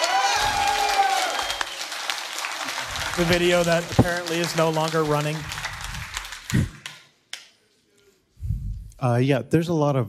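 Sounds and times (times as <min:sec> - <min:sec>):
audience applause: 0:00.0 - 0:07.2
speech: 0:03.2 - 0:05.6, 0:06.5 - 0:06.8, 0:09.0 - 0:10.0.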